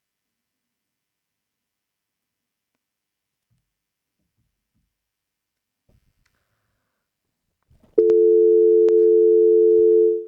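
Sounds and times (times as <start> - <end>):
telephone ringing tone while waiting for pickup: 8.0 - 10.2.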